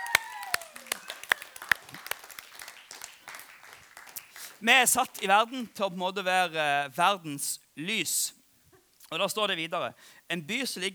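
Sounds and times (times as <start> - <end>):
audience applause: 0.0 - 4.9
speech: 4.6 - 8.4, 9.1 - 10.9.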